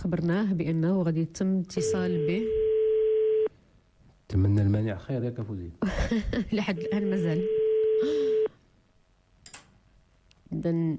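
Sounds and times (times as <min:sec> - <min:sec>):
speech: 0:00.0 - 0:02.6, 0:04.3 - 0:08.2, 0:10.5 - 0:10.9
telephone line tone on a radio call-in line: 0:01.8 - 0:03.5, 0:06.7 - 0:08.6.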